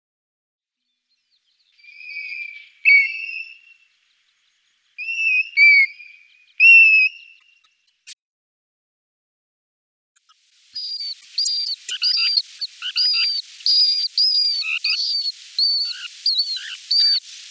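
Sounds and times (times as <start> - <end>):
European golden plover calling plaintive level whistles: 1.8 - 3.8, 5.0 - 7.7, 10.7 - 17.4.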